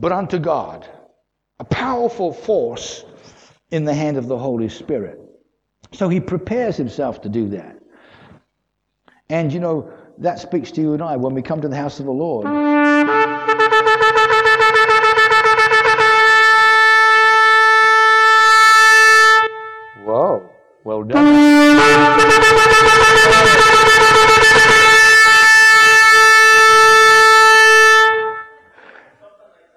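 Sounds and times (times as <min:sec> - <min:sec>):
speech: 0:00.0 - 0:01.0, 0:01.6 - 0:03.1, 0:03.7 - 0:05.2, 0:05.9 - 0:07.8, 0:09.3 - 0:13.2
recorded shofar blasts: 0:12.4 - 0:28.8.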